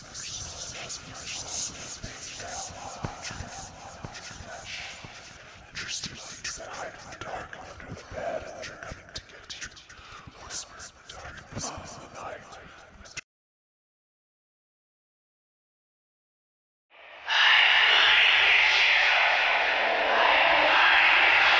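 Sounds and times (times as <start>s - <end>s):
horror whispers: 0.0s - 13.2s, 17.2s - 21.5s
unsettling horror sound effects: 17.0s - 21.5s.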